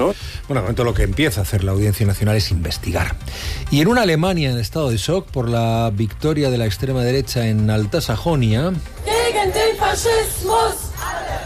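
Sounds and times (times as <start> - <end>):
speech: 0.1 - 10.8
protest crowd chanting against fascism: 9.0 - 11.4.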